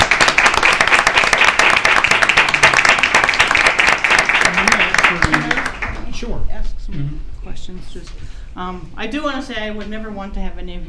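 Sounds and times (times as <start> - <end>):
audience applause: 0.0 - 6.0
speech: 7.7 - 10.8.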